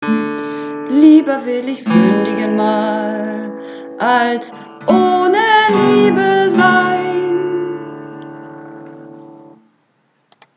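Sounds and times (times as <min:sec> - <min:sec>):
soprano singing practice: 0:00.8 - 0:08.2.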